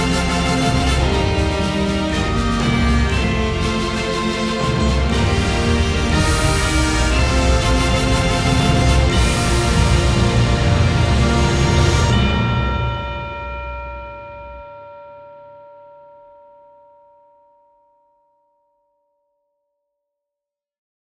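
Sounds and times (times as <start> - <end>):
theme music without choir: 0.0 - 14.2.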